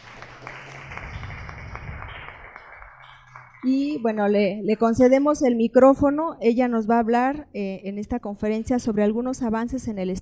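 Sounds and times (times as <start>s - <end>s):
audience applause: 0.0s - 4.0s
speech: 3.6s - 10.2s.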